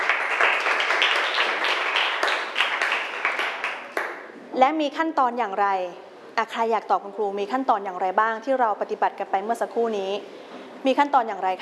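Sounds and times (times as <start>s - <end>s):
students clapping for a classmate: 0.0s - 4.3s
speech: 4.6s - 11.6s.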